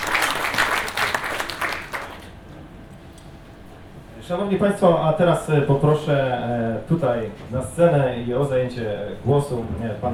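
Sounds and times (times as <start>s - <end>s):
audience applause: 0.0s - 2.3s
speech: 4.3s - 10.1s.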